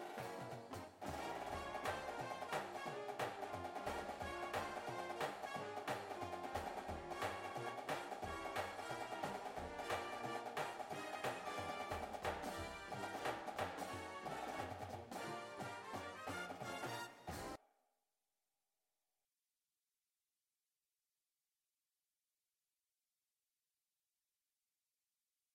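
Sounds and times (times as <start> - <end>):
drumline snare drum: 0.0 - 17.6
music: 0.0 - 17.6.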